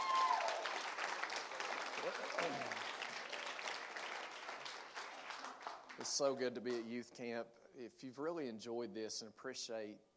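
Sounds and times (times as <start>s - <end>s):
audience applause: 0.0s - 6.1s
speech: 2.0s - 2.8s, 6.0s - 10.1s.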